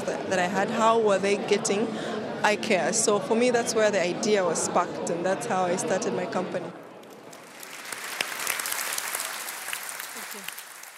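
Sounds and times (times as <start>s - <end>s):
speech: 0.3s - 6.8s
friendly audience applause after a presentation: 7.1s - 10.9s.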